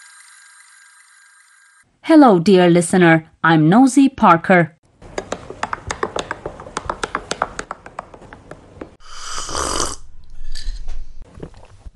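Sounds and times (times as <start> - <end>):
speech: 2.0 - 4.8
person sipping coffee: 9.0 - 11.9.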